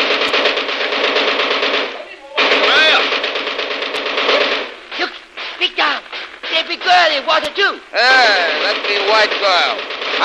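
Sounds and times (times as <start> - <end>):
machine gun firing: 0.0 - 10.2
speech: 7.4 - 10.2.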